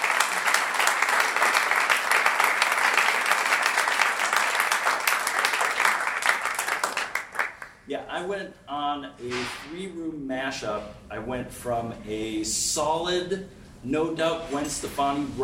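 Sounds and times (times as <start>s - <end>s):
round of applause: 0.0s - 7.8s
speech: 8.0s - 15.4s.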